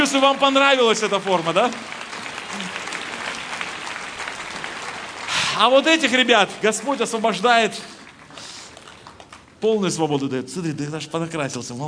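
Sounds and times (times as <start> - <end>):
speech: 0.0 - 2.8, 5.6 - 8.0, 9.6 - 11.8
audience applause: 0.0 - 9.8.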